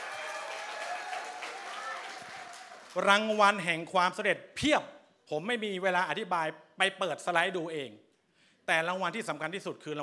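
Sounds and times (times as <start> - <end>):
audience applause at a skincare product sales presentation: 0.0 - 3.2
speech: 2.9 - 8.0, 8.7 - 10.0.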